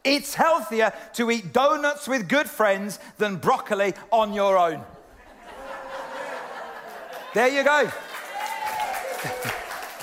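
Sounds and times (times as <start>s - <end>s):
speech: 0.0s - 4.9s, 7.4s - 8.1s, 9.2s - 9.6s
laughter: 4.9s - 7.6s
audience clapping: 6.6s - 10.0s.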